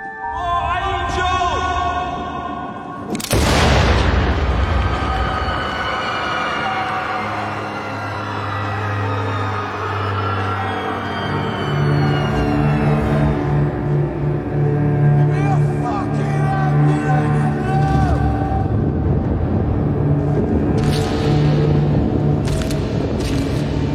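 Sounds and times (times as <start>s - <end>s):
music: 0.0s - 23.9s
gunshot of an assassin firing into a crowd: 3.1s - 5.4s.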